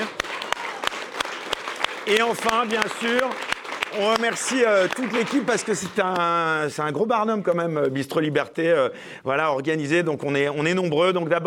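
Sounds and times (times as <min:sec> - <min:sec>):
audience applause: 0:00.0 - 0:06.4
speech: 0:02.1 - 0:11.4.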